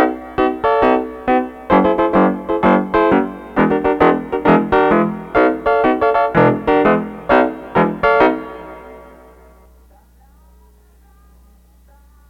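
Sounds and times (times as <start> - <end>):
synths playing a microtonal scale: 0.0 - 9.4.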